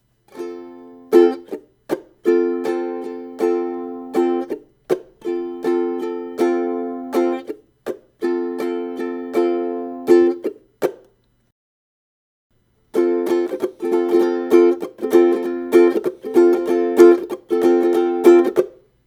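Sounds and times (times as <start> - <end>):
ukulele strumming: 0.3 - 11.2, 12.9 - 19.0.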